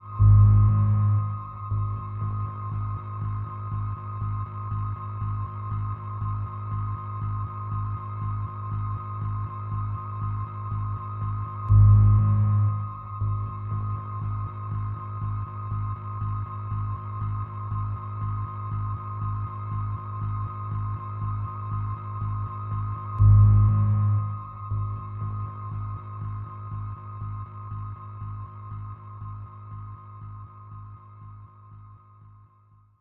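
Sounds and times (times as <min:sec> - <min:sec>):
music: 0:00.0 - 0:32.9.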